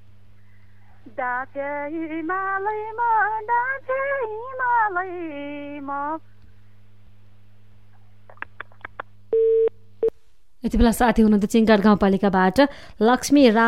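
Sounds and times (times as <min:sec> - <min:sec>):
speech: 0:01.0 - 0:06.3, 0:10.6 - 0:13.6
telephone line tone beep after the call drops: 0:09.3 - 0:09.7.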